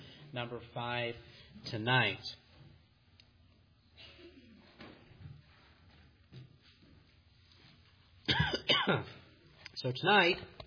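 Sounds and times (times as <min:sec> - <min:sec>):
speech: 0:00.4 - 0:02.4, 0:08.8 - 0:09.2, 0:09.8 - 0:10.6
preacher coughing during a church sermon after something went down the wrong pipe: 0:08.3 - 0:09.2.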